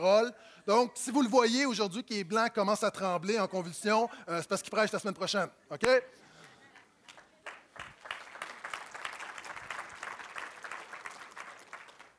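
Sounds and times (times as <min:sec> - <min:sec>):
speech: 0:00.0 - 0:06.2
resigned audience applause: 0:07.4 - 0:12.1.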